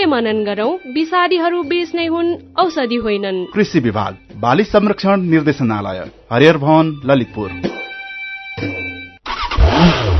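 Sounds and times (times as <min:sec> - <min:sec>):
speech: 0:00.0 - 0:07.8, 0:08.6 - 0:08.8
Bangladesh-made Runner motorcycle engine revving: 0:08.6 - 0:10.1.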